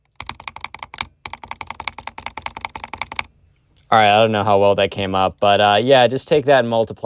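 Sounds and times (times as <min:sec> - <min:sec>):
butterfly clicking on a computer mouse with two fingers: 0:00.0 - 0:03.3
speech: 0:03.9 - 0:07.0.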